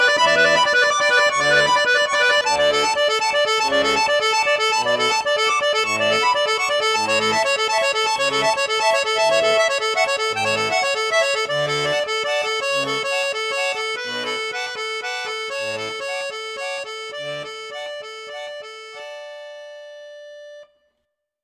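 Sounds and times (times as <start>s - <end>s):
Pigini Star Jazz accordion piccolo register: 0.0s - 21.4s.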